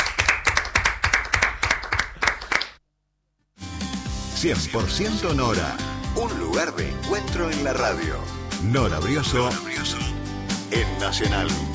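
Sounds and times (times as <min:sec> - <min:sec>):
applause: 0:00.0 - 0:02.8
speech: 0:04.4 - 0:10.0, 0:10.7 - 0:11.7.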